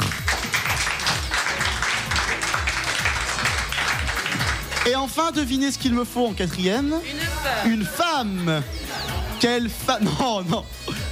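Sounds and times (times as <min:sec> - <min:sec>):
audience applause: 0:00.0 - 0:05.1
speech: 0:04.8 - 0:08.8, 0:09.4 - 0:11.0
laughter: 0:07.1 - 0:11.0.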